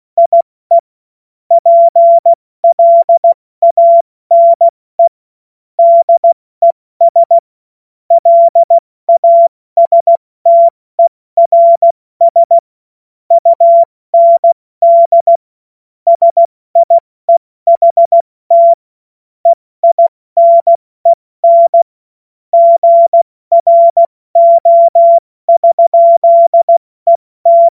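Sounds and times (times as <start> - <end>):
CW Morse code beeps: 0.2 - 0.8, 1.5 - 5.1, 5.8 - 6.4, 7.0 - 7.4, 8.1 - 12.6, 13.3 - 15.4, 16.1 - 18.8, 19.5 - 20.8, 21.4 - 21.9, 22.6 - 27.7.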